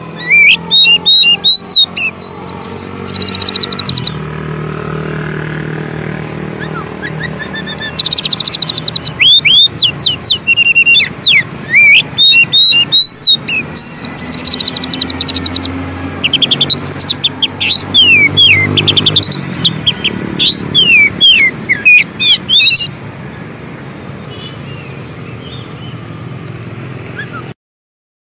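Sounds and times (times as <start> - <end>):
Oriental magpie-robin song: 0.0 - 4.3, 6.4 - 23.0, 27.1 - 27.6.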